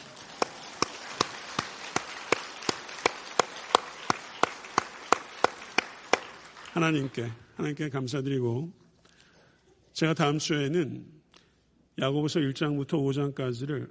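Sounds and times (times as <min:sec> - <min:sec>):
audience clapping in steady unison: 0:00.0 - 0:07.4
speech: 0:06.8 - 0:08.8, 0:10.0 - 0:11.2, 0:12.0 - 0:13.8.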